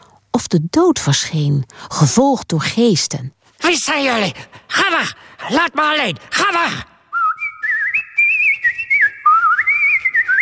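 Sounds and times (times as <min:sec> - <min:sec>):
speech: 0:00.4 - 0:06.9
human whistling imitating nightingale song: 0:07.1 - 0:10.3.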